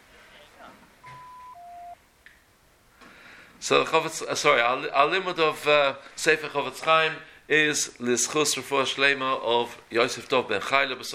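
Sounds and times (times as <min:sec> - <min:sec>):
two-tone electronic beep: 0:01.0 - 0:02.0
speech: 0:03.6 - 0:11.1.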